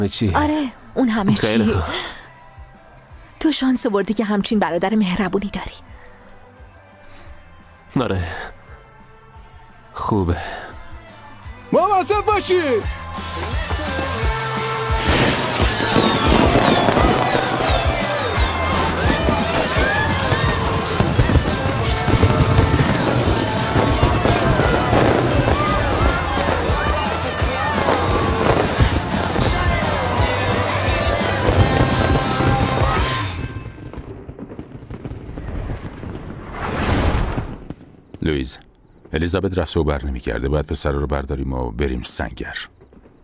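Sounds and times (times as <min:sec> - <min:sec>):
speech: 0:00.0 - 0:02.2, 0:03.4 - 0:05.9, 0:07.9 - 0:08.6, 0:10.0 - 0:10.6, 0:11.7 - 0:13.4, 0:38.3 - 0:42.8
fireworks exploding with booms, crackles and whistles: 0:12.5 - 0:38.2.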